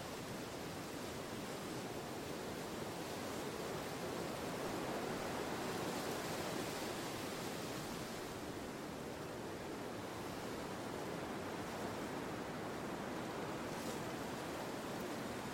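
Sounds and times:
sea waves washing up a beach at low tide driven by wind: 0:00.2 - 0:15.5.

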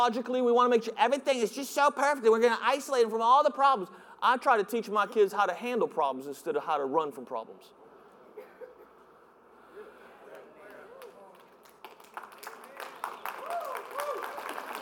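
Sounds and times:
speech: 0:00.0 - 0:07.8
audience clapping: 0:10.3 - 0:14.8.

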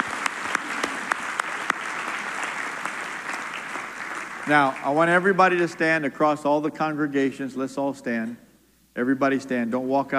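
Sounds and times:
audience clapping hands: 0:00.0 - 0:05.8
speech: 0:04.5 - 0:08.4, 0:09.0 - 0:10.1.

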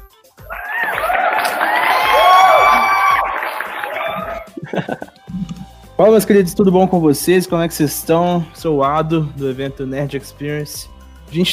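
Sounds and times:
audience applause and cheering: 0:00.4 - 0:05.0
laughter: 0:00.6 - 0:05.6
speech: 0:06.0 - 0:11.5.

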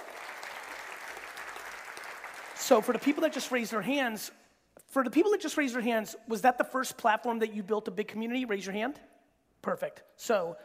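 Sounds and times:
audience applause: 0:00.0 - 0:03.7
speech: 0:02.6 - 0:10.6.

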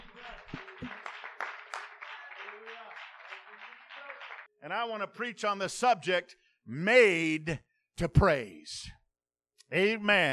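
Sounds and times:
seated audience clapping hands: 0:00.0 - 0:04.5
speech: 0:04.6 - 0:09.0, 0:09.7 - 0:10.3.

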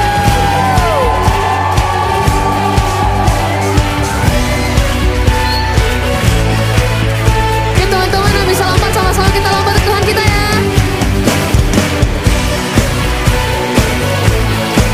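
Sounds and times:
crowd shouting woo: 0:00.0 - 0:05.9
crowd cheering and yelling: 0:00.0 - 0:10.6
driving music with a thumping beat: 0:00.0 - 0:14.9.

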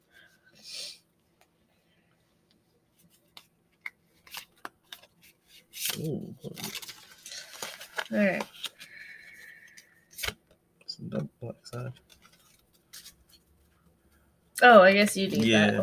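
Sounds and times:
shuffling a hand of playing cards: 0:03.0 - 0:10.4, 0:11.8 - 0:13.6
speech: 0:06.0 - 0:06.8, 0:08.1 - 0:08.5, 0:14.6 - 0:15.8.

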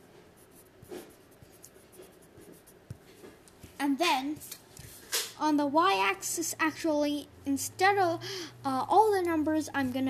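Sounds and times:
pen writing labels along the x-axis of a graph: 0:00.2 - 0:03.4
speech: 0:03.8 - 0:04.6, 0:05.4 - 0:10.0.

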